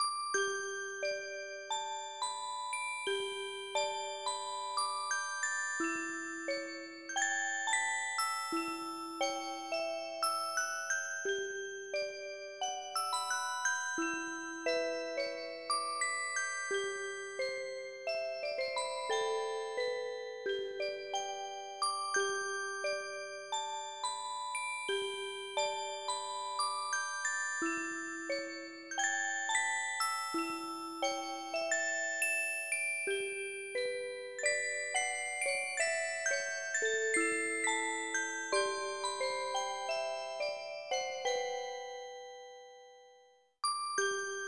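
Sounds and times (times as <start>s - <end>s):
music box: 0.0s - 44.4s.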